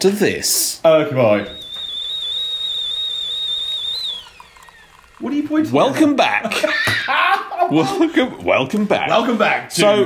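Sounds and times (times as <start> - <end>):
speech: 0.0 - 1.6, 5.2 - 10.0
whistling kettle: 1.2 - 7.1
laughter: 6.4 - 8.2.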